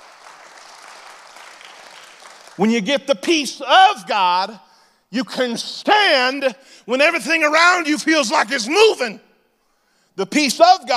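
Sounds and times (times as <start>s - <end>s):
audience clapping: 0.0s - 2.6s
speech: 2.6s - 9.3s, 10.2s - 10.9s.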